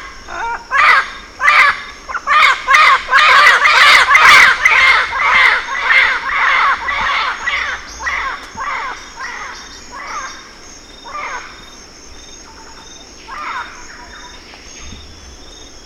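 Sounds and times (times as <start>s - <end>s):
bird harsh squawks: 0.0s - 10.4s
steady high hiss: 0.0s - 15.8s.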